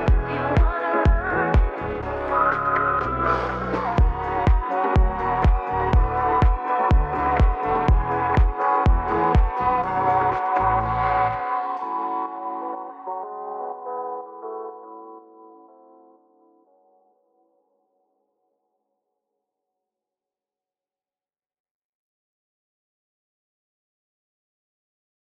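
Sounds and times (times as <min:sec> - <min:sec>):
French house music mix: 0:00.0 - 0:15.9.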